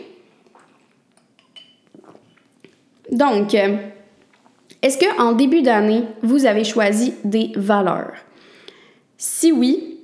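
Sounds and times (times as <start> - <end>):
person taking a small sip of drink: 0.1 - 3.0
speech: 3.1 - 4.0, 4.8 - 8.3, 9.2 - 9.9.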